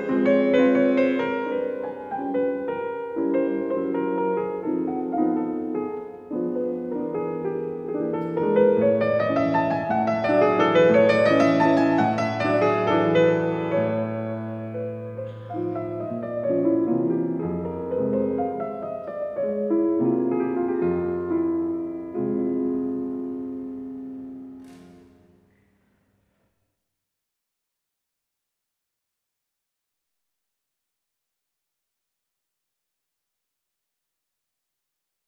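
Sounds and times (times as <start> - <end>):
piano mazurka in F minor: 0.0 - 25.9.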